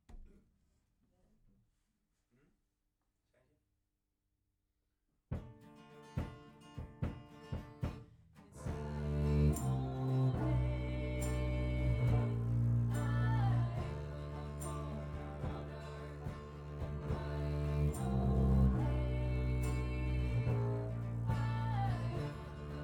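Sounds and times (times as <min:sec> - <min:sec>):
bass recorded through a microphone: 0:08.6 - 0:22.8.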